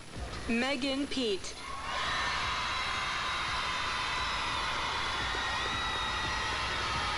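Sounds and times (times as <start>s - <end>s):
speech: 0.5s - 1.6s
large crowd cheering and roaring at name announcement: 1.6s - 7.1s.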